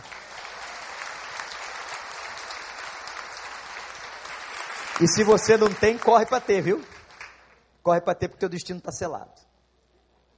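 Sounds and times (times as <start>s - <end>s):
audience clapping: 0.0s - 7.7s
speech: 5.0s - 7.0s, 7.8s - 9.4s.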